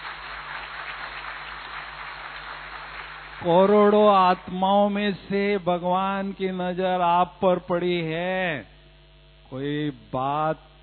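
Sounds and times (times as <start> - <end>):
audience applause: 0.0 - 4.0
speech: 3.4 - 8.8, 9.5 - 10.7.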